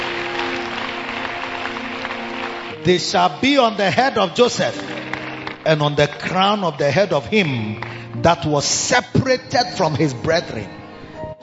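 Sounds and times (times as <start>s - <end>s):
audience clapping: 0.0s - 8.9s
speech: 2.8s - 5.0s, 5.6s - 10.8s.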